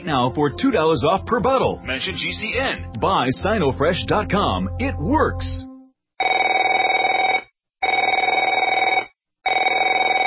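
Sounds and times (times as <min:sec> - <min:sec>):
speech: 0:00.0 - 0:05.7
telephone ringing: 0:06.2 - 0:10.2.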